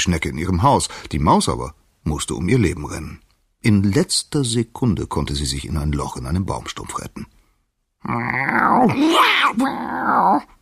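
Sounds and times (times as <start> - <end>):
speech: 0.0 - 7.4, 8.0 - 10.5
loud cat meow: 8.4 - 10.4.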